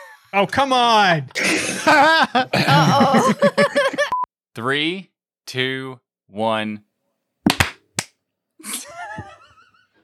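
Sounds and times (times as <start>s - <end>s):
speech: 0.3s - 3.8s, 4.6s - 6.9s
laughter: 1.4s - 4.1s, 8.6s - 10.0s
single hand clap: 7.5s - 8.1s.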